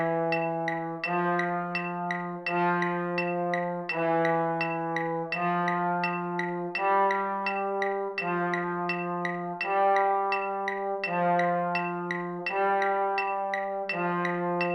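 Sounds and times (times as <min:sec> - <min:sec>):
marching band baritones playing: 0:00.0 - 0:14.7.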